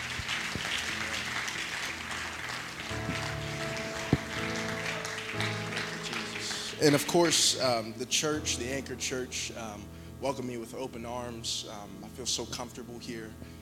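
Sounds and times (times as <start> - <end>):
audience clapping: 0.0 - 7.9
speech: 6.8 - 13.5.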